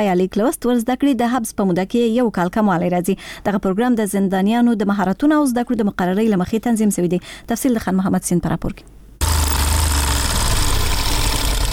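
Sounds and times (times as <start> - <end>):
speech: 0.0 - 8.9
sewing machine in a prison tailoring workshop in Kabul: 9.2 - 11.7.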